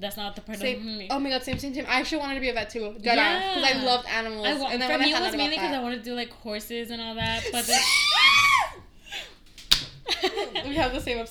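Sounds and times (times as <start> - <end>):
speech: 0.0 - 8.3, 10.6 - 11.2
hand clap: 9.7 - 10.0
laughter: 10.1 - 11.2.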